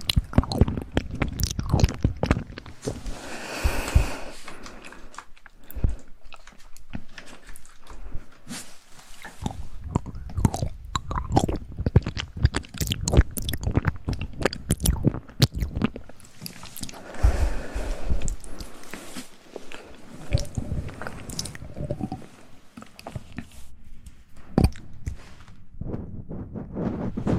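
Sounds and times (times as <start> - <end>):
wet mouth chewing and biting: 0.0 - 8.1, 9.2 - 23.6, 24.6 - 25.2.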